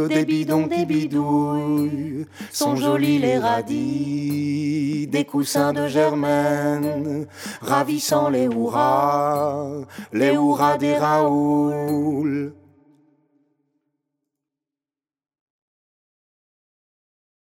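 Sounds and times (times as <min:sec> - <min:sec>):
baritone singing: 0:00.0 - 0:12.6.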